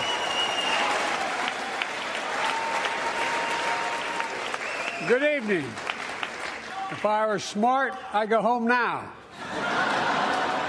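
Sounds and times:
audience applause: 0:00.0 - 0:07.3, 0:09.6 - 0:10.6
speech: 0:05.0 - 0:05.9, 0:06.9 - 0:09.7
laughter: 0:09.3 - 0:10.6.

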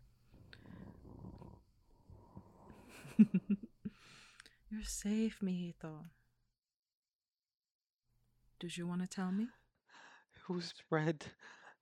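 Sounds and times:
snoring: 0:00.5 - 0:02.8
speech: 0:03.0 - 0:03.7, 0:04.7 - 0:06.2, 0:08.6 - 0:11.6.

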